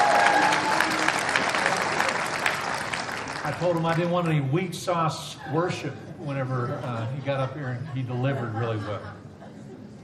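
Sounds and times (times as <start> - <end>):
audience applause: 0.0 - 4.3
speech: 3.6 - 9.2
laughter: 5.3 - 10.0.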